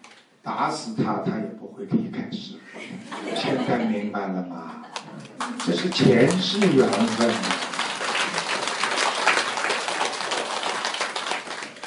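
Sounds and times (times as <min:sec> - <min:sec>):
speech: 0:00.4 - 0:07.6
laughter: 0:02.8 - 0:07.7
crowd applauding: 0:05.0 - 0:11.8.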